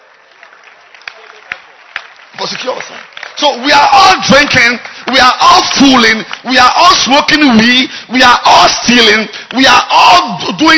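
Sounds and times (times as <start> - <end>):
audience clapping hands: 0.0 - 8.0
speech: 2.5 - 10.7.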